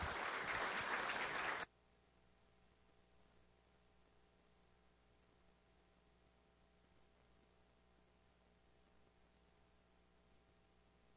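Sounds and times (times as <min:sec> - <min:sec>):
audience applause: 0:00.0 - 0:01.7.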